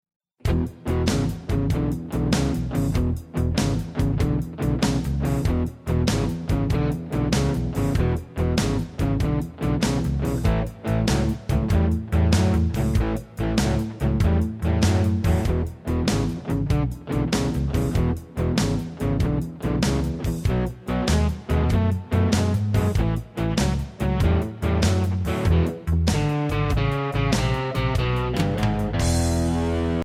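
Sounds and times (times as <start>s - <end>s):
blues shuffle: 0.4s - 30.0s.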